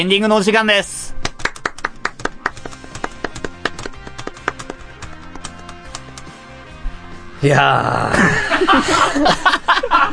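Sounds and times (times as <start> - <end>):
speech: 0.0 - 1.1, 7.4 - 10.1
tonal musical backing: 1.0 - 9.6
applause in steady rhythmic hand claps: 1.2 - 6.5
laughter: 8.0 - 10.1.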